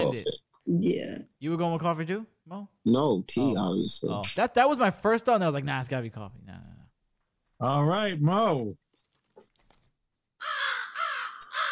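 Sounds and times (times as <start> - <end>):
speech: 0.0 - 6.6, 7.6 - 8.8
faint clicks and rustles: 8.8 - 10.1
crows cawing: 10.4 - 11.7.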